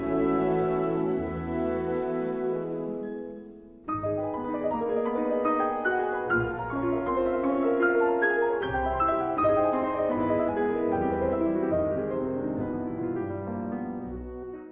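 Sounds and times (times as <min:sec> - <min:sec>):
piano improvisation: 0:00.0 - 0:14.7.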